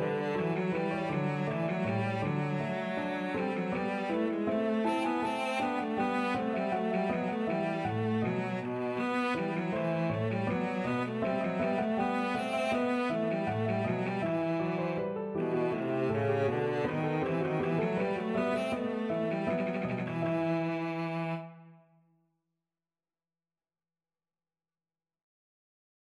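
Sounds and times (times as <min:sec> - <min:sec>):
cello playing a bourree: 0:00.0 - 0:21.8.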